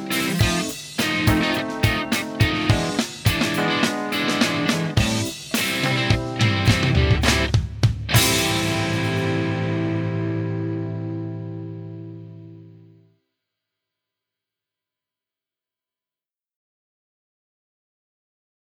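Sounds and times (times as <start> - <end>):
music without bass: 0.0 - 12.9.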